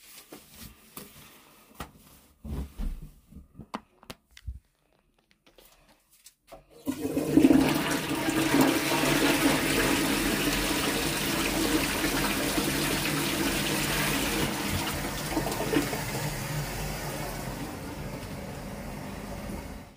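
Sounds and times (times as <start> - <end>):
person urinating in a toilet: 6.7 - 19.9.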